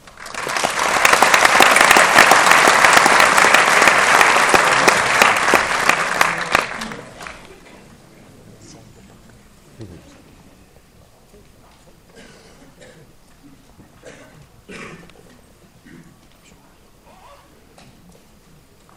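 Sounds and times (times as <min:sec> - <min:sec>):
conference audience applause welcoming a speaker: 0:00.0 - 0:07.6.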